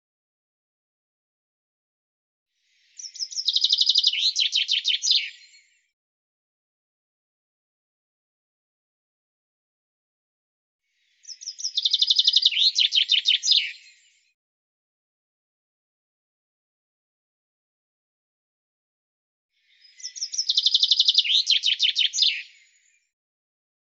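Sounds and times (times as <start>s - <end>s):
bird song: 2.6s - 6.0s, 10.9s - 14.4s, 19.5s - 23.2s.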